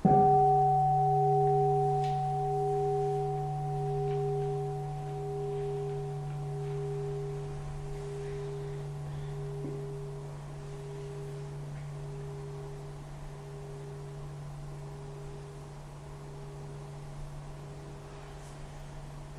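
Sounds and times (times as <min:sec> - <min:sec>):
bell ringing: 0:00.0 - 0:10.2.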